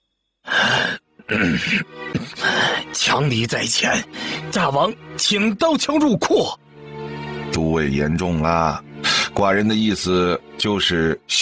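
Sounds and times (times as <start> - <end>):
person coughing after choking on tea: 0.7 - 2.5
speech: 1.3 - 6.6, 7.6 - 11.4.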